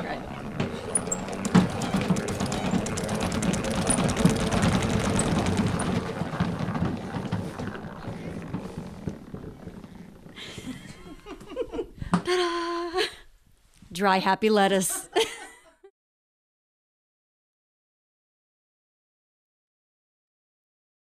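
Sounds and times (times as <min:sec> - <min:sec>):
salad spinner whirring: 0:00.0 - 0:12.3
laughter: 0:10.4 - 0:13.2, 0:14.8 - 0:15.9
speech: 0:14.0 - 0:15.0.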